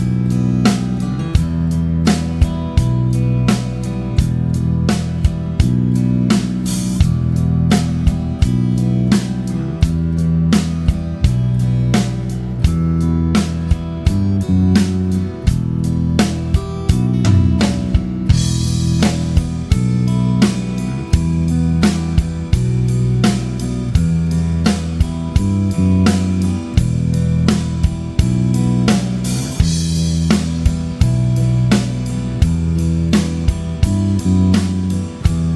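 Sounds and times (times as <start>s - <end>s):
E minor triad vamp: 0.0s - 35.5s.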